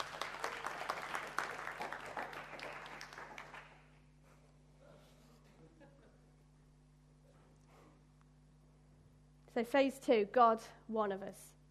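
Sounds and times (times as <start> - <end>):
audience applause: 0.0 - 3.9
speech: 9.6 - 11.6.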